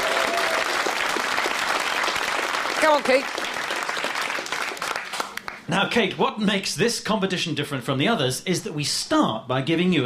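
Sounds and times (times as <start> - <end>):
game show audience applause welcoming a contestant: 0.0 - 5.7
speech: 2.8 - 3.6, 5.7 - 10.0.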